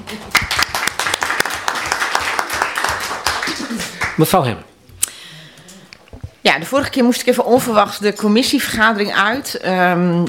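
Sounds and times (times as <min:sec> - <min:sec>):
applause from a small group: 0:00.0 - 0:04.6
speech: 0:00.1 - 0:00.6, 0:04.2 - 0:04.7, 0:06.4 - 0:10.2.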